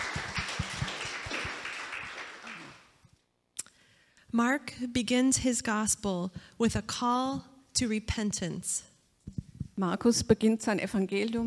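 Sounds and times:
audience applause: 0:00.0 - 0:03.0
speech: 0:04.4 - 0:08.9, 0:09.8 - 0:11.4.

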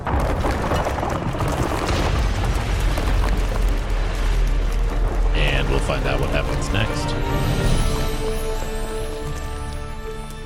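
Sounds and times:
metal tower collapsing into rubble: 0:00.0 - 0:07.5
debris crackling: 0:00.0 - 0:10.4
speech: 0:05.9 - 0:08.8.

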